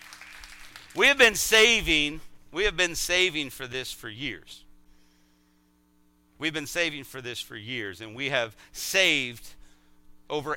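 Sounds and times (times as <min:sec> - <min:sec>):
audience applause: 0:00.0 - 0:01.0
speech: 0:01.0 - 0:04.6, 0:06.4 - 0:09.6, 0:10.3 - 0:10.5.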